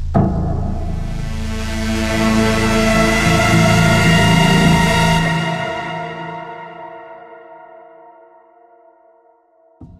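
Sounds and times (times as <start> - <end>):
music loop: 0.2 - 7.3.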